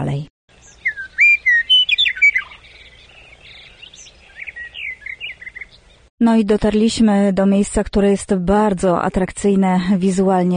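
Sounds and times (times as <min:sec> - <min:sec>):
speech: 0:00.0 - 0:00.3, 0:06.2 - 0:10.5
wild birds chirping and whistling at a pond: 0:00.5 - 0:06.1.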